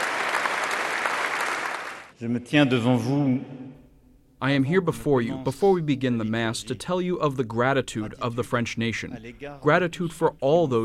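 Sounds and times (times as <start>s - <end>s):
dignitaries and clergy applauding firefighters: 0.0s - 2.1s
speech: 2.2s - 3.6s, 4.4s - 10.8s
man speaking loudly: 2.2s - 3.7s, 4.4s - 10.8s.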